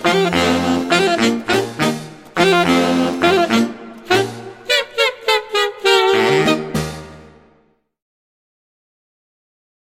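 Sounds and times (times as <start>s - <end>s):
laughing saxophone: 0.0s - 6.8s.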